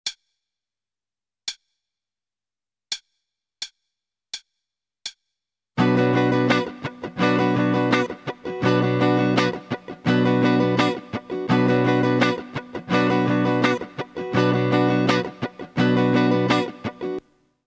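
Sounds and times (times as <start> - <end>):
starter guitar rhythm: 5.8 - 17.3.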